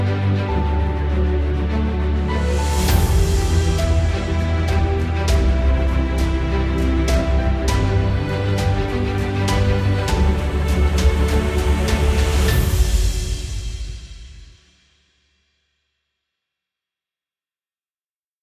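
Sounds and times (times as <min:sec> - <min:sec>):
epic upbeat cinematic music: 0:00.0 - 0:14.6.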